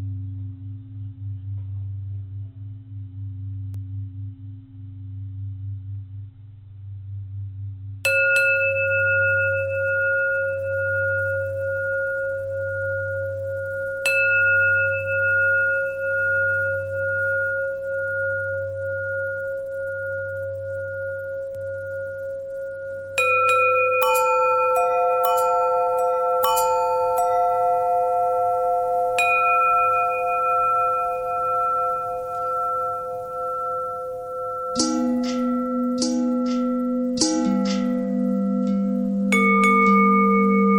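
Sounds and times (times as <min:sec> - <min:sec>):
long bell tone bending: 0:08.1 - 0:40.7.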